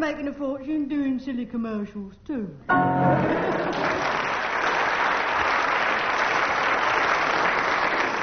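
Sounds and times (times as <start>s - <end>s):
speech: 0.1s - 4.5s
audience applause: 3.2s - 8.2s.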